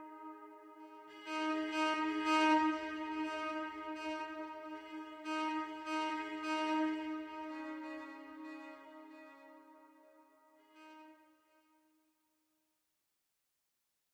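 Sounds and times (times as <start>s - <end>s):
echoing cellos: 1.1s - 9.2s.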